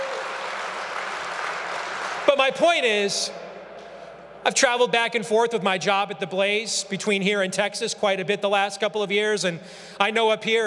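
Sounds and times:
audience applause: 0.0s - 2.7s
speech: 2.3s - 3.4s, 4.4s - 10.6s.

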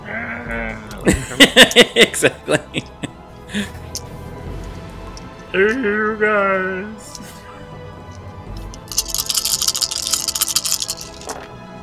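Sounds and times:
speech: 0.5s - 4.0s, 5.5s - 7.2s
laughter: 1.0s - 3.7s
big handful of dice clattering across a surface: 8.6s - 11.5s.

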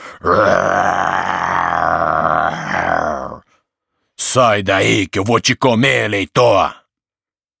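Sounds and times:
person imitating a big bad wolf's roar: 0.0s - 3.5s
speech: 0.2s - 0.6s, 4.4s - 6.8s.

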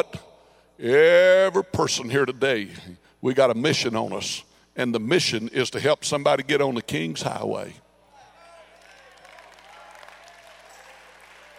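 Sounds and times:
speech: 0.0s - 0.2s, 0.8s - 7.8s
audience clapping: 8.4s - 11.5s.

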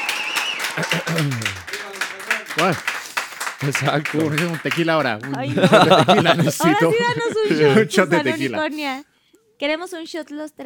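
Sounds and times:
voices calling out and cheering: 0.0s - 2.9s, 3.6s - 8.8s
audience applause: 0.0s - 8.6s
laughter: 0.7s - 1.8s, 3.6s - 8.8s
speech: 0.8s - 1.7s, 2.6s - 3.0s, 3.6s - 10.6s.

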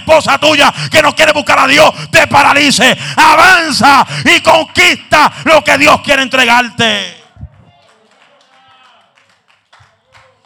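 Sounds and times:
speech: 0.1s - 7.2s
audience applause: 7.2s - 10.4s.

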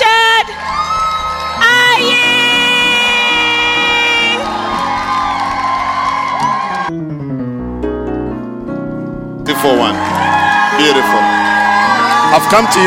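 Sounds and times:
church congregation cheering loudly to welcome the pastor: 0.0s - 6.9s, 9.6s - 12.8s
sustained keyboard chords: 0.5s - 12.8s
speech: 12.4s - 12.8s.

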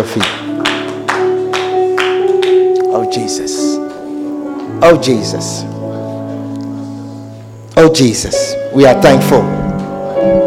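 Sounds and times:
speech: 0.0s - 0.7s, 3.0s - 3.8s, 4.7s - 5.8s, 7.8s - 9.6s
audience clapping: 0.0s - 3.0s.

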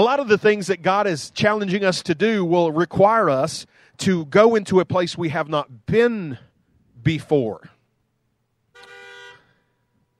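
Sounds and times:
speech: 0.0s - 7.7s
car horn beep: 8.7s - 10.1s.

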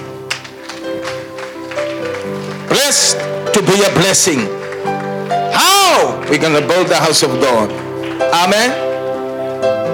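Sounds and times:
crowd clapping in a steady rhythm: 0.2s - 9.1s
speech: 2.8s - 5.0s, 6.3s - 8.8s.

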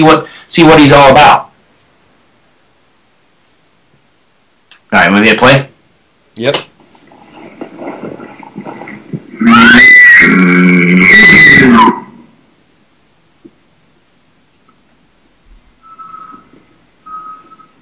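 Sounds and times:
speech: 0.0s - 1.4s, 4.9s - 5.7s, 6.4s - 6.7s, 9.4s - 12.0s
mature bull squealing call: 9.4s - 12.2s.

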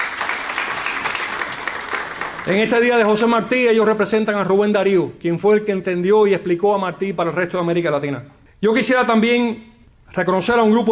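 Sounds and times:
audience applause: 0.0s - 2.8s
speech: 2.4s - 10.9s.

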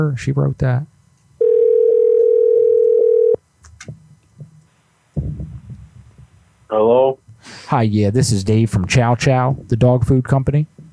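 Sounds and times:
speech: 0.0s - 0.9s, 6.7s - 10.8s
telephone dial tone: 1.4s - 3.4s.

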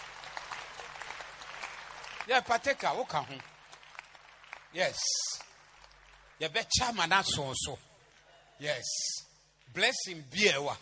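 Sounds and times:
audience applause: 0.0s - 6.5s
speech: 2.3s - 3.5s, 4.7s - 5.5s, 6.4s - 7.9s, 8.6s - 10.7s.

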